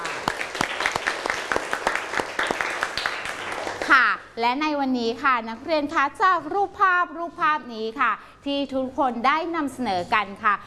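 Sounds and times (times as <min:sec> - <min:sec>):
students applauding: 0:00.0 - 0:03.9
speech: 0:04.4 - 0:10.6.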